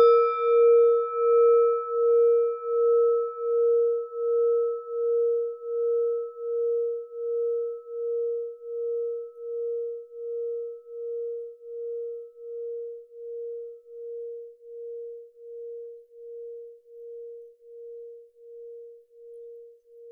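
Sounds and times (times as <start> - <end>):
klangschale singing bowl from Nepal: 0.0 - 20.1.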